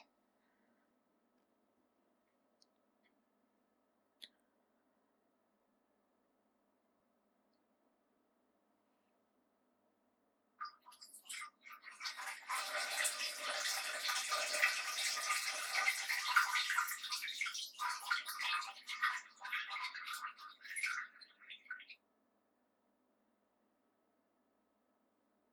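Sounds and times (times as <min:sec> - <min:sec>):
urinating into a toilet in stereo: 0:10.6 - 0:22.1.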